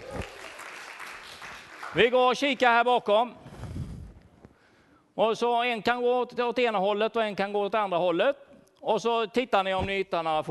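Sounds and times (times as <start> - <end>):
crowd applause: 0.0 - 2.0
speech: 2.0 - 3.4, 5.2 - 10.4.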